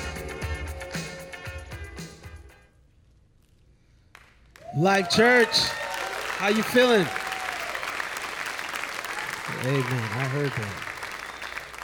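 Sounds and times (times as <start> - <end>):
audience clapping: 4.1 - 11.8
speech: 4.8 - 5.8, 6.4 - 7.2, 9.6 - 10.8.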